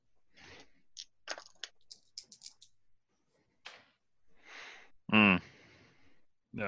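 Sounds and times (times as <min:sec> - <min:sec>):
dice clattering: 0:01.0 - 0:02.7.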